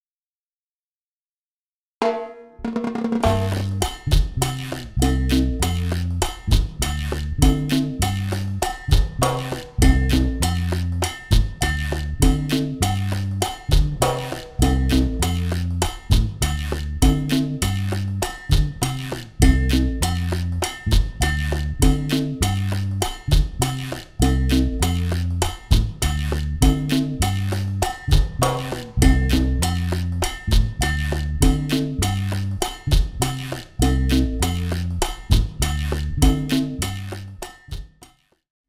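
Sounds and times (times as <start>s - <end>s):
cha-cha-cha music: 2.0s - 37.8s.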